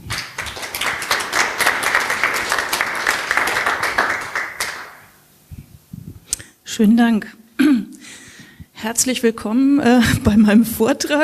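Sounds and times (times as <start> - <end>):
audience applause: 0.0 - 5.1
speech: 6.8 - 7.4, 8.8 - 11.2.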